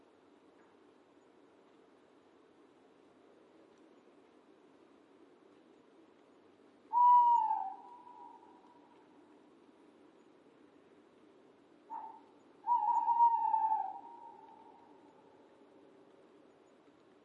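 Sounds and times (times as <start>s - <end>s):
owl whistled hoot: 6.9s - 9.0s, 11.9s - 15.2s.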